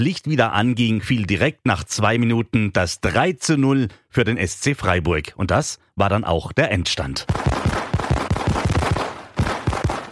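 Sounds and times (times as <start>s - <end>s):
speech: 0.0s - 7.7s
fireworks exploding: 7.3s - 10.0s.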